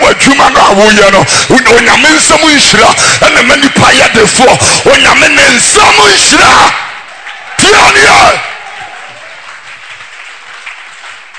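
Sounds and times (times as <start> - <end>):
speech: 0.1 - 6.9, 7.6 - 8.5
audience clapping: 6.7 - 11.3.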